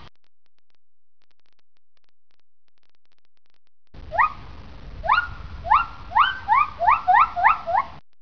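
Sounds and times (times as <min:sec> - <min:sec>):
male gibbons calling: 0:05.1 - 0:08.0.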